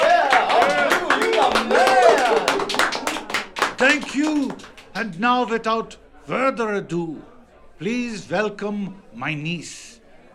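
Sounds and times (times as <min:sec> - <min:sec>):
audience applause: 0:00.0 - 0:05.0
speech: 0:03.8 - 0:10.0.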